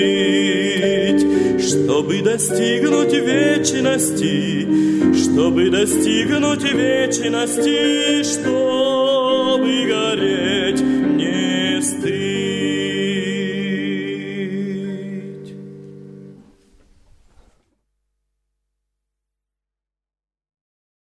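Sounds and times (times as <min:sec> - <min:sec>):
person singing: 0:00.0 - 0:16.4.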